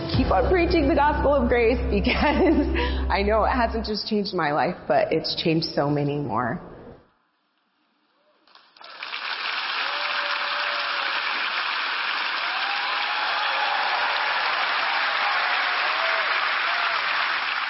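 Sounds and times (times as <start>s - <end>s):
speech: 0.1s - 6.7s
audience applause: 8.5s - 17.6s.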